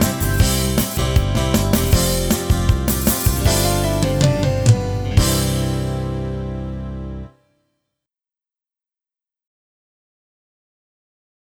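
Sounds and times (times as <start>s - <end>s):
karaoke singing: 0.0s - 5.8s.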